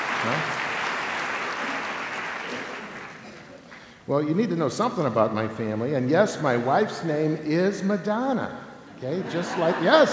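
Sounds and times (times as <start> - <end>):
congregation at Mass applauding a bishop's homily: 0.0 - 3.9
speech: 0.2 - 0.6, 4.1 - 10.1
laughter: 9.0 - 10.1.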